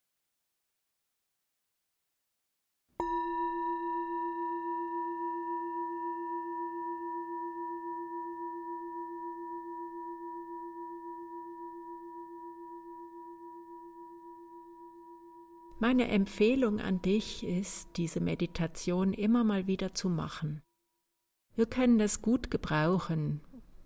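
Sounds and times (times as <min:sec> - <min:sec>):
meditation gong ringing: 0:03.0 - 0:18.6
speech: 0:15.8 - 0:20.6, 0:21.6 - 0:23.5.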